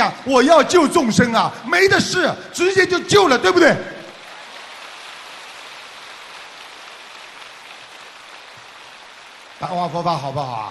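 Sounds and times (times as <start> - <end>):
speech: 0.0 - 3.9, 9.6 - 10.6
large audience applause: 4.1 - 10.6.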